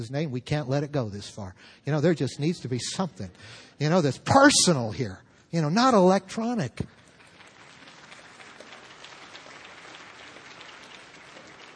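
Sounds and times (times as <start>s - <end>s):
speech: 0.0s - 7.0s
audience applauding: 6.9s - 11.7s.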